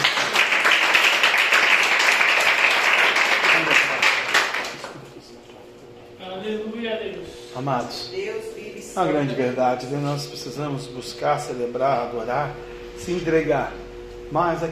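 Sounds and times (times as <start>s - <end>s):
audience applauding: 0.0s - 5.2s
speech: 7.6s - 8.3s, 9.0s - 14.7s.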